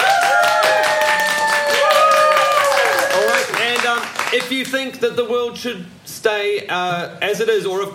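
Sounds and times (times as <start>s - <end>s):
voices cheering and calling out: 0.0s - 3.8s
crowd clapping: 0.0s - 4.9s
speech: 4.3s - 7.9s.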